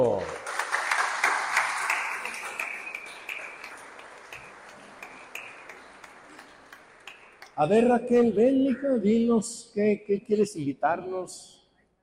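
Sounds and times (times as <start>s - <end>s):
audience applause: 0.0s - 7.8s
speech: 7.6s - 11.6s.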